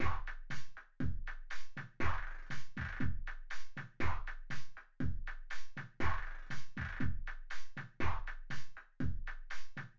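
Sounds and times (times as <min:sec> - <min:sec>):
drums: 0:00.0 - 0:09.9.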